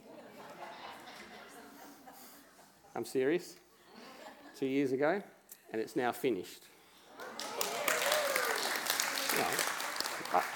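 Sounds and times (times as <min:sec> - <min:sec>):
speech: 0:03.0 - 0:03.6, 0:04.6 - 0:06.8, 0:09.4 - 0:09.7, 0:10.3 - 0:10.5
crowd applauding: 0:07.2 - 0:10.5.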